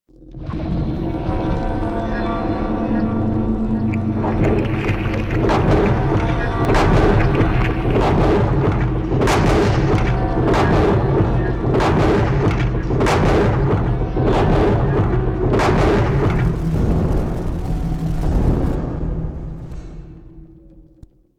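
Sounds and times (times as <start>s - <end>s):
background machinery: 0.6s - 21.1s.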